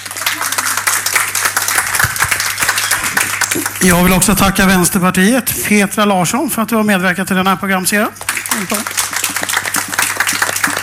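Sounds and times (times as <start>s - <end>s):
crowd applauding: 0.0s - 4.9s, 8.2s - 10.8s
low steady hum: 1.6s - 9.0s
speech: 3.8s - 9.6s.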